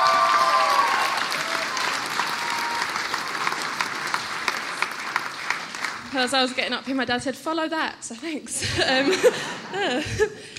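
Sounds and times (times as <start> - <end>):
audience applause: 0.0 - 6.5
speech: 6.1 - 10.5
laughter: 8.6 - 10.5.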